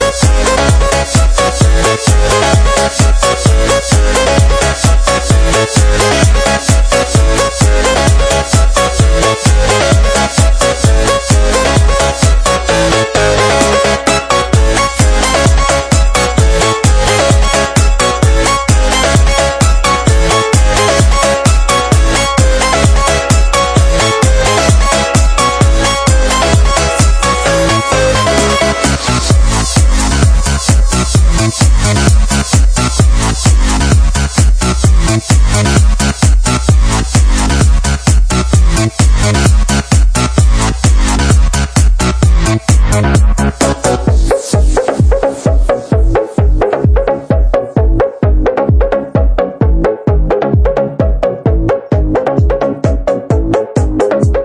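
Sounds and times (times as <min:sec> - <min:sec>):
original extended instrumental mix disco: 0:00.0 - 0:54.4.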